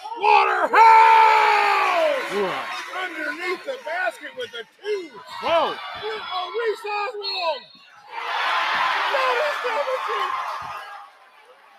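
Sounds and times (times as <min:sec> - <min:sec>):
basketball crowd roaring after a score: 0:00.0 - 0:03.4, 0:08.1 - 0:11.2
speech: 0:00.2 - 0:00.9, 0:03.1 - 0:10.8.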